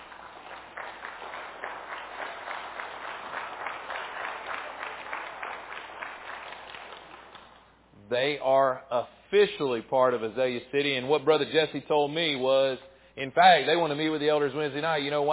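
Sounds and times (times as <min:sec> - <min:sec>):
audience applause welcoming a couple: 0:00.0 - 0:07.7
speech: 0:08.1 - 0:15.3.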